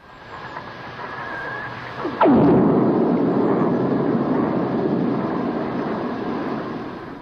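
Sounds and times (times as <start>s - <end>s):
lightning strike recorded underwater: 2.0s - 7.2s.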